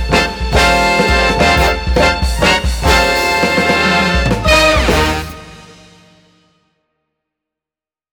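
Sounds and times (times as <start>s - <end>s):
jazz music: 0.0s - 6.5s.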